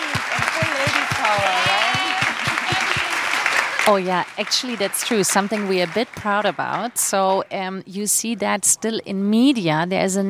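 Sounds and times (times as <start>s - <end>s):
audience applause: 0.0s - 7.7s
speech: 3.9s - 10.2s.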